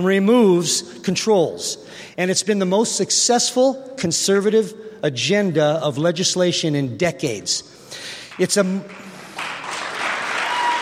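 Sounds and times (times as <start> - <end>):
speech: 0.0 - 9.1
audience applause: 8.3 - 10.8.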